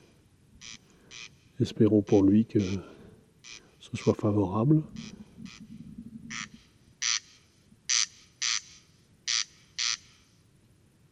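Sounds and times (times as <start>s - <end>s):
corn crake rasping double note: 0.6s - 10.2s
speech: 1.6s - 2.9s, 3.9s - 5.1s
low rumbling background: 4.0s - 6.6s.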